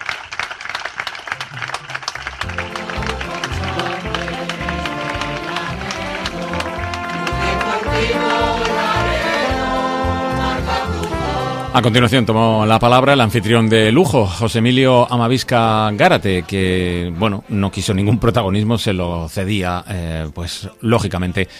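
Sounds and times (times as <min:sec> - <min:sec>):
audience giving loud applause: 0:00.0 - 0:11.7
speech: 0:11.7 - 0:21.5.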